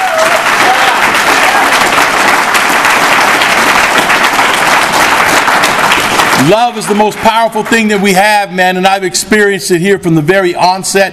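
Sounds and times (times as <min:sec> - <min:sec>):
audience applause: 0:00.0 - 0:07.9
speech: 0:06.4 - 0:11.1.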